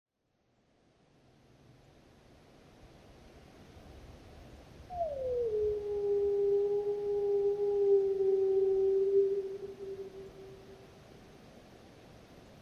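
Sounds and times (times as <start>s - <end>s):
lone wolf howling: 4.9s - 10.9s.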